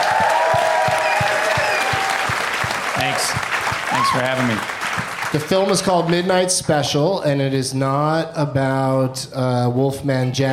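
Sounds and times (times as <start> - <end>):
audience applause: 0.0 - 6.5
speech: 4.0 - 10.5.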